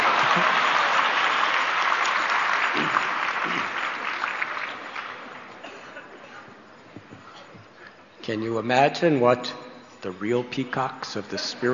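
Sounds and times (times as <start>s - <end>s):
audience applause: 0.0s - 5.6s
speech: 8.3s - 11.7s.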